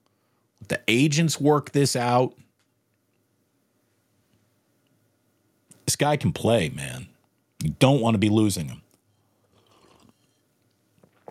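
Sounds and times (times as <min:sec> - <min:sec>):
speech: 0:00.7 - 0:02.4, 0:05.9 - 0:08.8
person sipping a hot drink from a cup: 0:09.4 - 0:10.4.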